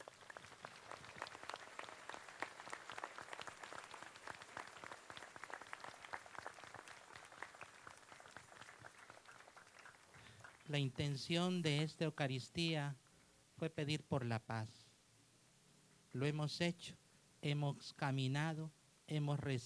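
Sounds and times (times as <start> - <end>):
audience applause: 0.0 - 10.8
speech: 10.7 - 13.0, 13.6 - 14.8, 16.1 - 19.6.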